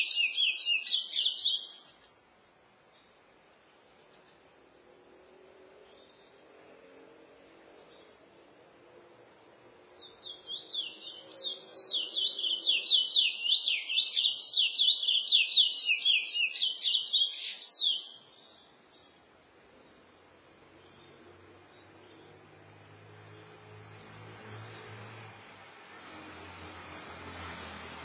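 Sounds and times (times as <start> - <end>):
chestnut-bellied seed finch singing: 0.0 - 2.0, 10.0 - 19.2.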